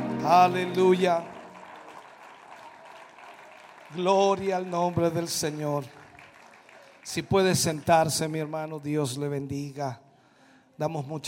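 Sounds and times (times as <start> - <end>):
audience applause: 0.0 - 8.2
speech: 0.2 - 1.4, 3.9 - 6.0, 7.0 - 10.0, 10.8 - 11.2.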